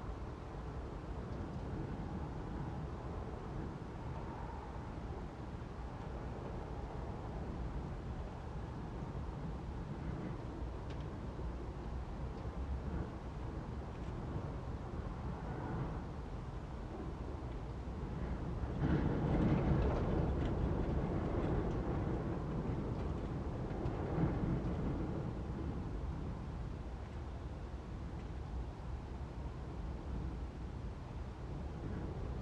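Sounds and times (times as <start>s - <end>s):
light wind gusts in an interior attic space: 0.0s - 32.4s.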